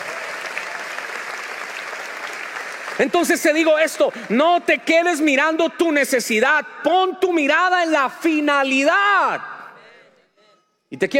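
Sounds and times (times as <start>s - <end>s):
church congregation applauding during a service: 0.0s - 5.9s
speech: 3.0s - 9.5s, 10.9s - 11.1s.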